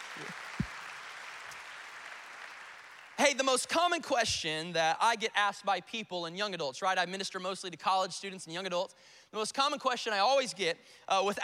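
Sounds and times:
audience clapping: 0.0 - 3.5
speech: 0.2 - 0.4, 3.2 - 11.4.

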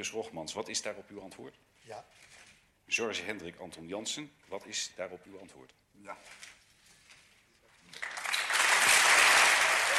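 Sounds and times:
speech: 0.0 - 6.5
applause: 7.8 - 9.9.

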